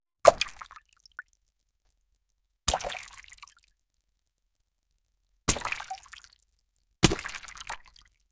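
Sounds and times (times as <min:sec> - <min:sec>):
small object gently splashing into water: 0:00.3 - 0:00.8, 0:02.7 - 0:03.4, 0:05.5 - 0:06.1, 0:07.0 - 0:07.8.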